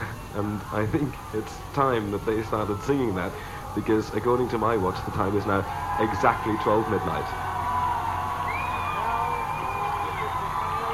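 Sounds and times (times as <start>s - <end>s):
large crowd cheering at midnight: 0.0s - 10.9s
speech: 0.4s - 7.5s
shrill whistle: 8.4s - 10.9s.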